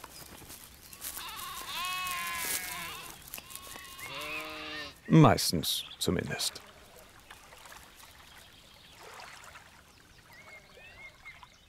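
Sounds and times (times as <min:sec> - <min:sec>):
sheep bleating: 0:01.0 - 0:05.0
speech: 0:05.1 - 0:06.7.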